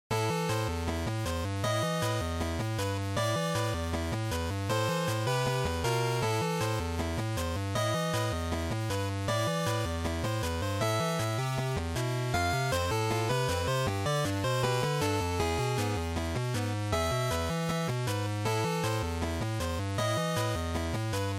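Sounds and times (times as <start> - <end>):
Game Boy RPG battle music: 0.1 - 21.3.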